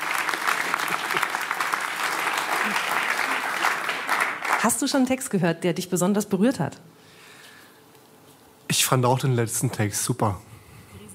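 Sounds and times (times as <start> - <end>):
audience applause: 0.0 - 4.8
speech: 4.6 - 7.0, 8.9 - 10.5.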